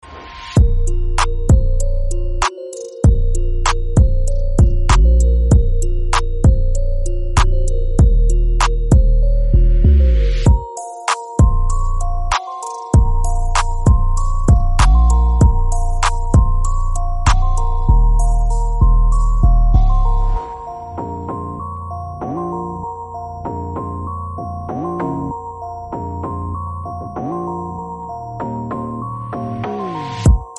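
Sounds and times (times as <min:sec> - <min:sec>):
type beat ringtone: 0:00.6 - 0:30.5.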